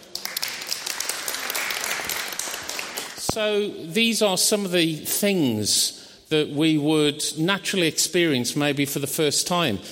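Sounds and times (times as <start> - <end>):
audience applause: 0.0 - 3.2
speech: 3.4 - 9.9.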